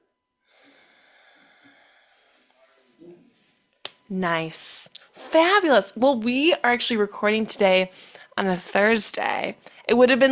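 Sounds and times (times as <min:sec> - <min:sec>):
slow breathing exercise: 0:00.4 - 0:03.8, 0:07.9 - 0:08.4
speech: 0:04.1 - 0:10.3.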